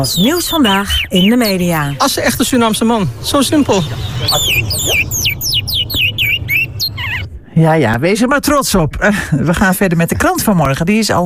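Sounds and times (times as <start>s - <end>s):
speech: 0.0s - 4.9s, 7.6s - 11.2s
small pet birds chirping: 0.0s - 7.6s
low steady rumble: 0.0s - 9.0s.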